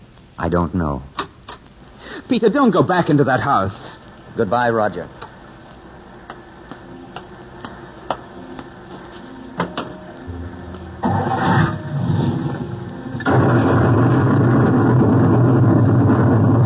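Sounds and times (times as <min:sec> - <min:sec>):
speech: 0:00.4 - 0:01.2, 0:02.3 - 0:05.2
lightning bolt striking: 0:11.0 - 0:16.6.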